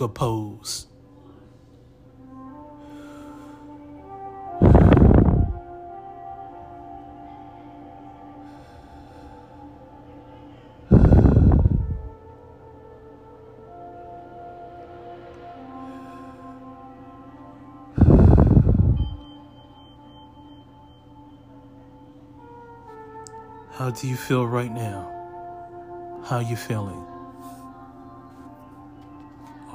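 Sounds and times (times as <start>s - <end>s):
speech: 0.0s - 0.9s, 23.8s - 25.2s, 26.3s - 27.1s
deep breaths during breathing exercise: 2.6s - 3.9s, 4.6s - 5.6s, 8.3s - 10.2s, 10.8s - 12.2s, 17.9s - 19.2s.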